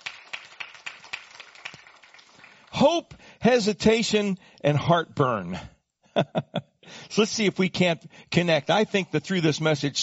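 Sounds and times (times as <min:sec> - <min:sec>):
church congregation rhythmic hand clapping giving thanks: 0:00.0 - 0:03.3
speech: 0:02.8 - 0:06.5, 0:07.1 - 0:10.0.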